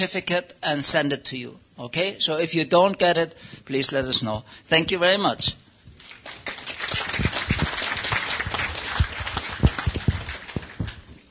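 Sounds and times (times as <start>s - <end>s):
speech: 0.0s - 5.6s
audience applause: 6.0s - 11.2s.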